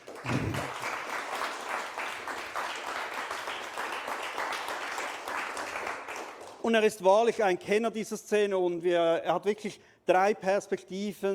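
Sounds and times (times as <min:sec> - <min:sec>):
audience applause welcoming a guest: 0:00.0 - 0:06.6
speech: 0:06.7 - 0:11.3.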